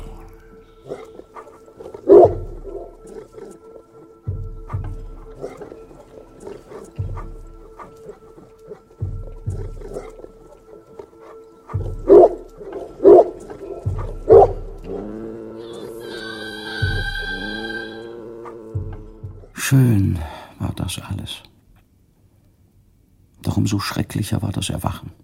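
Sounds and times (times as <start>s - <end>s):
dog growling at the moon: 0.2s - 19.6s
speech: 19.7s - 20.3s, 20.9s - 21.5s, 23.6s - 25.2s.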